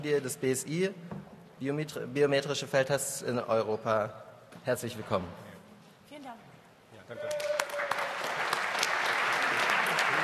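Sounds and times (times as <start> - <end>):
speech: 0.0 - 5.5
steady audience applause: 7.2 - 10.2.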